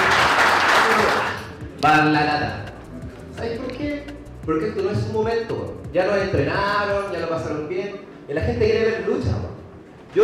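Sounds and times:
crowd applauding: 0:00.0 - 0:01.6
speech: 0:01.8 - 0:02.7, 0:03.4 - 0:09.5.

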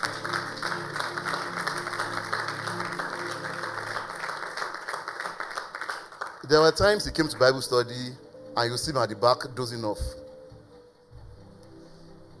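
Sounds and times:
audience clapping: 0:00.0 - 0:07.8
speech: 0:06.5 - 0:10.2.

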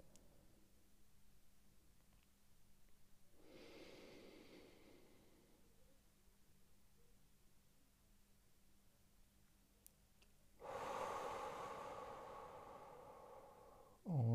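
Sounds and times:
person breathing slowly during a timed breathing exercise: 0:03.4 - 0:05.9, 0:10.6 - 0:14.3.

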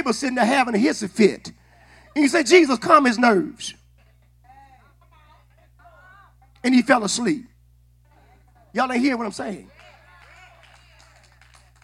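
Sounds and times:
speech: 0:00.0 - 0:03.8, 0:06.6 - 0:07.5, 0:08.7 - 0:09.8
audience clapping: 0:09.6 - 0:11.8.

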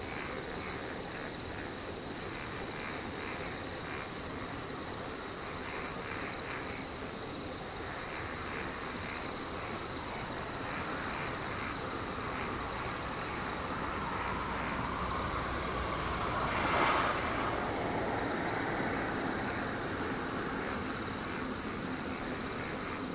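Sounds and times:
insects trilling: 0:00.0 - 0:23.1
low traffic rumble: 0:00.0 - 0:23.1
vehicle passing: 0:10.8 - 0:23.0.

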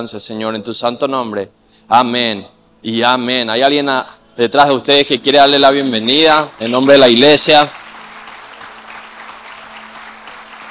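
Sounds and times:
speech: 0:00.0 - 0:07.8
loud crowd applause: 0:05.9 - 0:10.7.

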